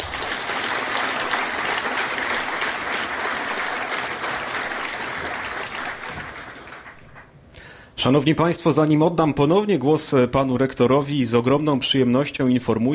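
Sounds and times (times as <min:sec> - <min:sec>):
loud applause for new students: 0:00.0 - 0:07.4
speech: 0:08.0 - 0:12.9.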